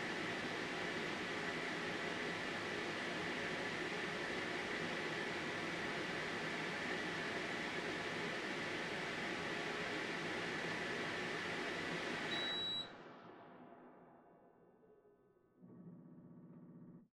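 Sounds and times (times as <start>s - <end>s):
air purifier running on high: 0.0s - 12.8s.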